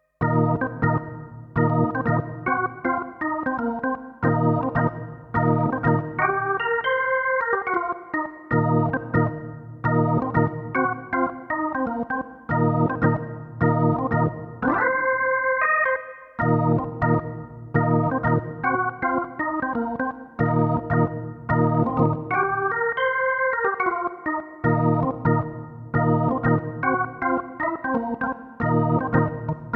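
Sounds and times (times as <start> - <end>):
spacy organ: 0.2 - 29.7.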